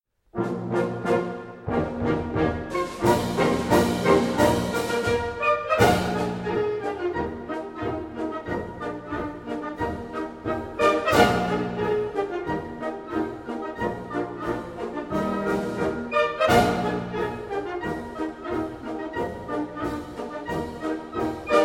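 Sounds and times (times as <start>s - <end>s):
farmers' polka music: 0.3s - 21.6s.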